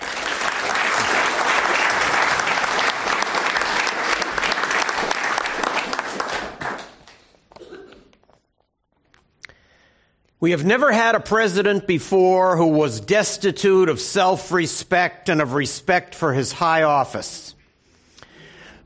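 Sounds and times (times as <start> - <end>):
audience applause welcoming a speaker: 0.0 - 7.4
speech: 10.4 - 17.6.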